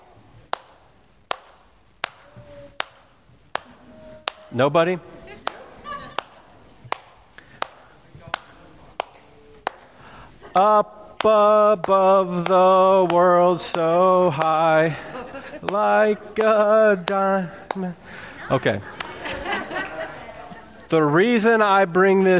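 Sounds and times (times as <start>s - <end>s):
hands clapping out a song's tune: 0.5s - 4.6s, 5.4s - 10.0s, 10.6s - 14.6s, 15.6s - 17.9s
speech: 4.5s - 5.2s, 10.8s - 19.0s, 20.9s - 22.3s
laughter: 5.0s - 6.9s, 14.7s - 16.1s, 18.0s - 21.2s.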